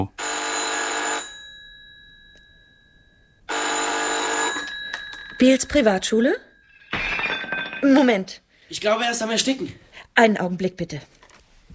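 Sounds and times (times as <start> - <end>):
telephone bell ringing outside: 0.2 - 6.8
speech: 5.4 - 6.5, 7.8 - 11.2.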